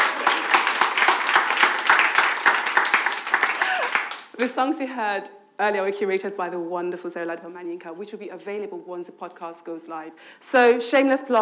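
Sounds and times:
crowd applause: 0.0 - 4.3
speech: 4.4 - 11.4.

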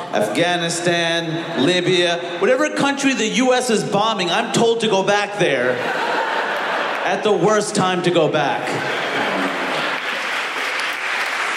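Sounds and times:
speech: 0.1 - 6.1, 7.1 - 9.0
laughter: 5.6 - 7.4, 8.5 - 10.3
comedy club audience applauding: 8.6 - 11.5.

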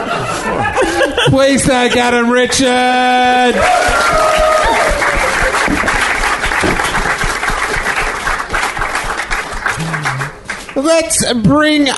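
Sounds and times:
laughter: 0.0 - 2.3
speech: 1.3 - 4.1, 10.8 - 11.9
audience applause: 3.4 - 10.8.

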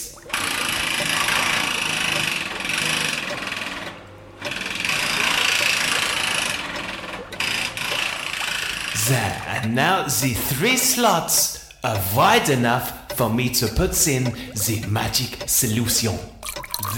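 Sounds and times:
jackhammer drilling: 0.3 - 9.1
speech: 9.1 - 16.4.

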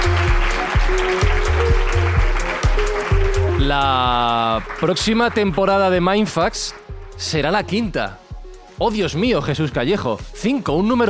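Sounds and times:
audience applause: 0.0 - 6.9
speech: 3.7 - 8.2, 8.8 - 11.0.

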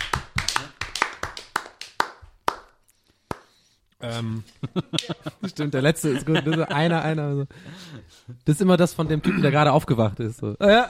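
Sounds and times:
hand clapping: 0.0 - 3.6, 4.9 - 5.2
speech: 4.0 - 10.8
laughter: 4.4 - 7.0.

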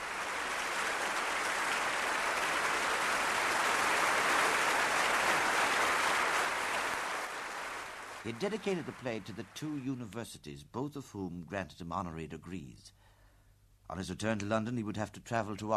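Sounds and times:
audience clapping hands: 0.0 - 10.2
speech: 8.2 - 13.0, 13.9 - 15.7.

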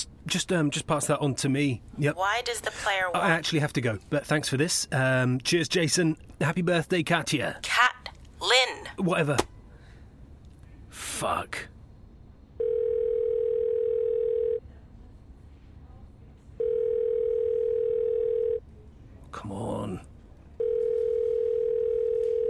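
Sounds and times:
speech: 0.2 - 9.5, 11.0 - 11.7, 19.4 - 20.1
phone ringing tone while calling: 12.6 - 14.6, 16.6 - 18.6, 20.6 - 22.4.

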